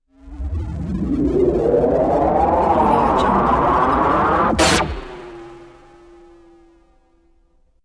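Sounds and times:
sci-fi warbling synth rips and swells: 0.2 - 5.9.

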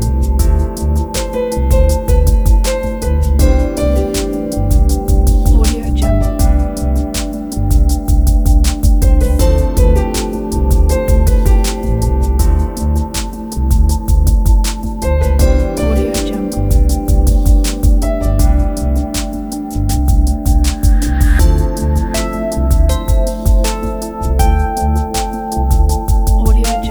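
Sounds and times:
ambient background improvisation: 0.0 - 26.8.

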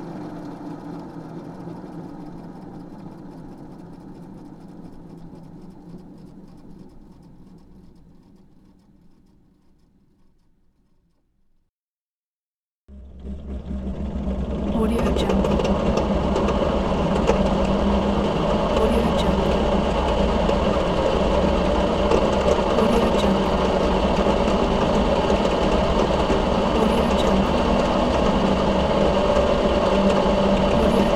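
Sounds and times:
machine noise: 12.9 - 31.1.

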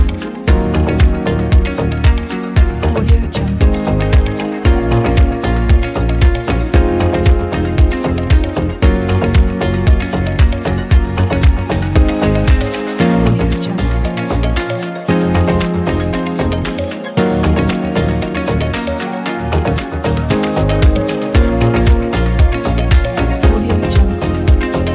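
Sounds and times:
modern corporate motivational music: 0.0 - 24.9.

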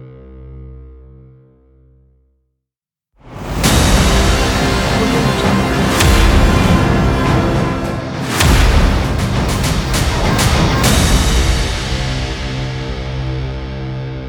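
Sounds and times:
rock trailer logo music: 3.3 - 14.0.

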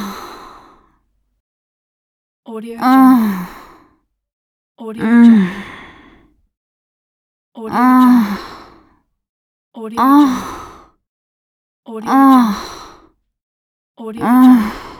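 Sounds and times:
person moaning in orgasm: 2.8 - 3.5, 5.0 - 5.7, 7.7 - 8.5, 9.9 - 10.6, 12.0 - 12.7, 14.1 - 14.9.

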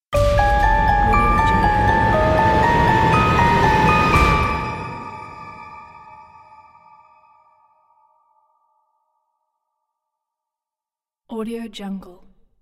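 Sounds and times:
evil gothic stinger: 0.2 - 7.6.

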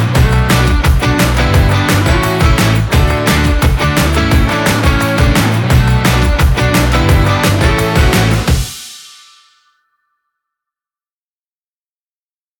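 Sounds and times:
happy pop rock music: 0.0 - 9.0.

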